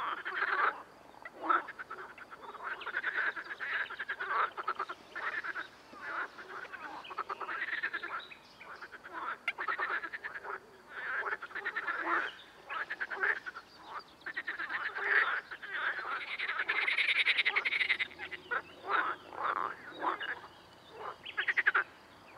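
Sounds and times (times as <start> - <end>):
amphibian ambience: 0.0 - 22.3.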